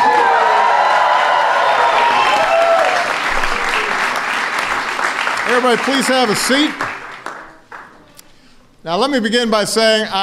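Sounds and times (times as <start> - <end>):
applause for the Golden State Warriors at the White House: 0.0 - 8.1
speech: 5.5 - 6.9, 8.8 - 10.2.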